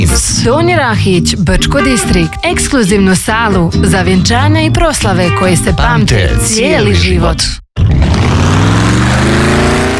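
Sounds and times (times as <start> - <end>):
speech: 0.0 - 7.6
powerful car engine revving on INA Classmaster fuel: 7.8 - 9.9.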